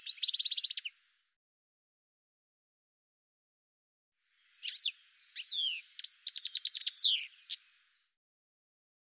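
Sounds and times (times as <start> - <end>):
bird twittering chirps and trills: 0.0 - 0.9, 4.6 - 8.1.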